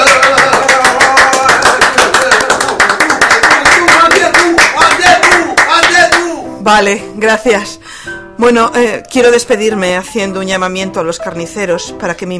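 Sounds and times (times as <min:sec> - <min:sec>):
cabaret audience applause: 0:00.0 - 0:06.2
speech: 0:06.7 - 0:07.8, 0:08.4 - 0:12.3.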